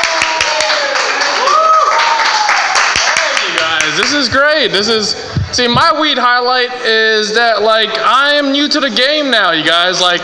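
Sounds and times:
audience applause for a guest: 0:00.0 - 0:04.2
speech: 0:04.0 - 0:10.2.

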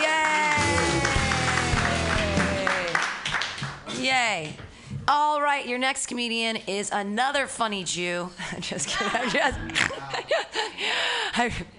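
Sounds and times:
audience clapping wildly: 0:00.0 - 0:04.6
speech: 0:04.1 - 0:11.7
laughter: 0:08.6 - 0:10.8.

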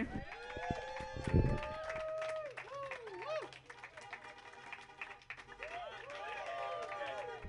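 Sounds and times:
audience clapping: 0:00.0 - 0:07.4.

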